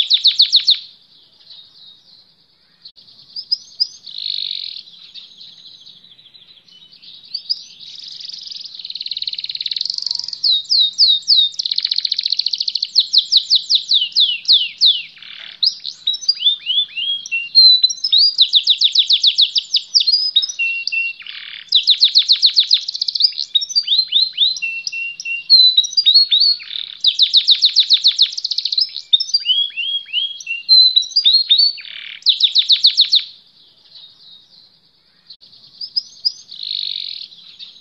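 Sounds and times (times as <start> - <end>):
canary singing: 0.0 - 37.7.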